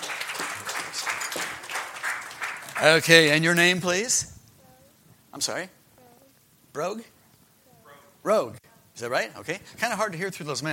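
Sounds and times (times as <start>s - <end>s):
audience applause: 0.0s - 3.4s
speech: 2.8s - 4.3s, 5.4s - 5.8s, 6.8s - 7.1s, 8.2s - 10.7s.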